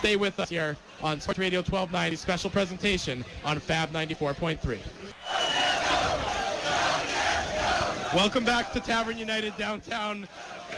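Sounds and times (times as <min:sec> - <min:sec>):
speech: 0:00.0 - 0:05.4, 0:08.1 - 0:10.6
bar crowd singing a national anthem in downtown Winnipeg: 0:05.1 - 0:10.7.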